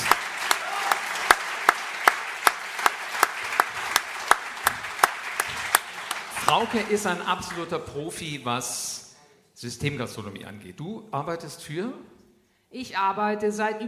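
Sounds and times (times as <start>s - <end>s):
audience applause: 0.0s - 7.8s
speech: 6.5s - 9.0s, 9.6s - 13.8s.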